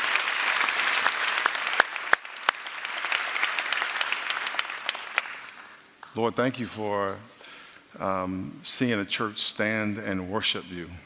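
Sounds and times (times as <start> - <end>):
audience applause in church: 0.0 - 5.8
speech: 6.2 - 11.0.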